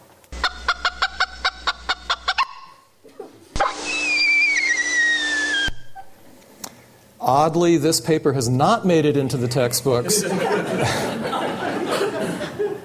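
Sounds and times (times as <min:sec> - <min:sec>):
bird predator alarm calls with sharp harmonic clucking notes: 0:00.4 - 0:02.8
high-pitched downward-sliding bird whistle over hissing noise: 0:03.6 - 0:06.1
speech: 0:07.3 - 0:11.3
laughter: 0:10.0 - 0:12.8.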